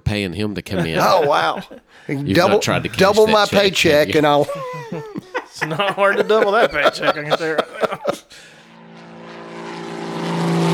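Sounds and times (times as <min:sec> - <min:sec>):
speech: 0:00.1 - 0:08.5
laughter: 0:00.7 - 0:08.6
airplane propeller engine drone sound effect: 0:08.4 - 0:10.7.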